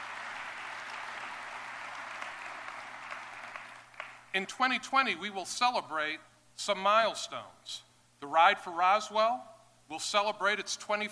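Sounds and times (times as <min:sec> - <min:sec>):
audience applauding: 0:00.0 - 0:04.2
speech: 0:04.4 - 0:11.1.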